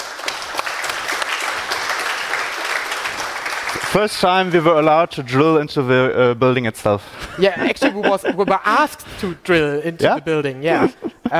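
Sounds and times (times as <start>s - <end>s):
audience applause: 0.0s - 4.9s
speech: 3.9s - 11.3s
laughter: 7.2s - 9.0s, 10.6s - 11.3s.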